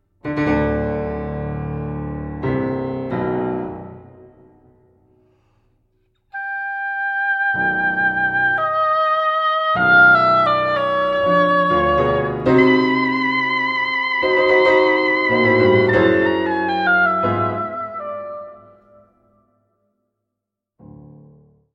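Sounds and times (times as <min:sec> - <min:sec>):
piano playing a sonata: 0:00.2 - 0:05.0, 0:07.5 - 0:19.1
oboe playing a sonata: 0:06.3 - 0:19.2.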